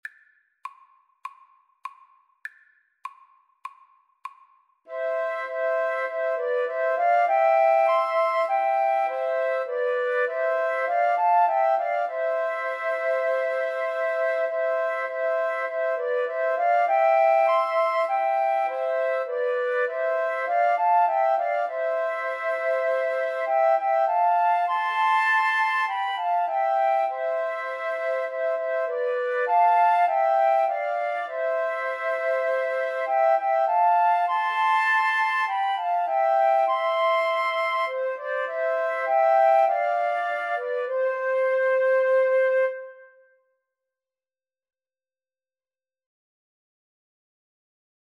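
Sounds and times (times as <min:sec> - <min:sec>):
flute trio playing: 0:04.9 - 0:43.2.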